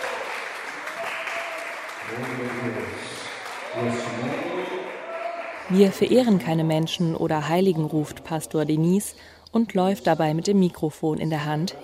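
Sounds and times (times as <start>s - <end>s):
audience applauding in church: 0.0s - 5.9s
speech: 2.1s - 4.9s, 5.7s - 11.8s.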